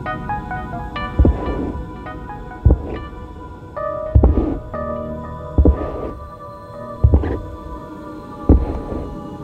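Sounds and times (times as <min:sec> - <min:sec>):
heavy thudding footsteps from the basement: 0:01.0 - 0:03.2, 0:04.1 - 0:06.3, 0:07.0 - 0:07.6, 0:08.5 - 0:09.1.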